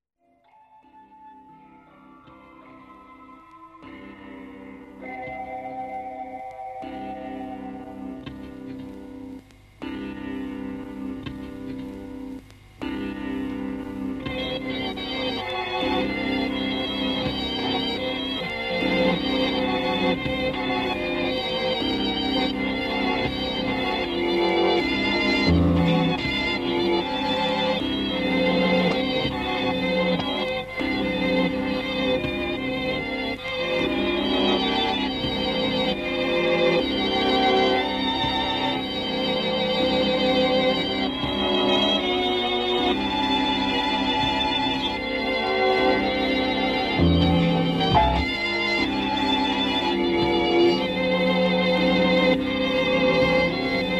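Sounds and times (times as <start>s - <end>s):
experimental mellotron music: 0.3s - 53.9s.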